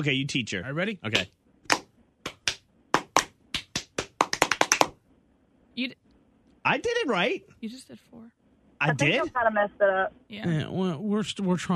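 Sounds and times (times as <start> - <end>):
speech: 0.0 - 1.4, 5.8 - 6.0, 6.6 - 11.7
call-and-response hand clapping pattern: 1.1 - 5.0.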